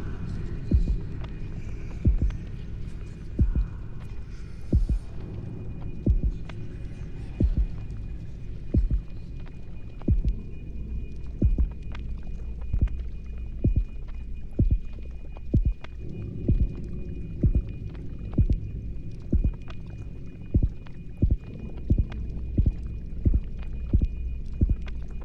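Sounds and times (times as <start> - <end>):
heartbeat background sound: 0.7 - 1.2, 2.0 - 2.5, 3.4 - 3.8, 4.7 - 5.2, 5.9 - 6.6, 7.4 - 7.9, 8.7 - 10.5, 11.3 - 12.0, 12.6 - 18.7, 19.3 - 19.8, 20.5 - 25.0.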